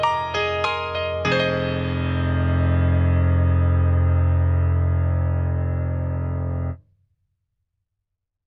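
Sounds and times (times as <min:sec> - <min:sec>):
hard C7 piano chord: 0:00.0 - 0:06.8.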